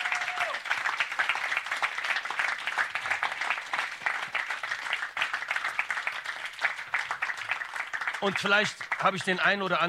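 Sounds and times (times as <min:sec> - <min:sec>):
crowd applauding: 0:00.0 - 0:09.8
speech: 0:08.2 - 0:09.8.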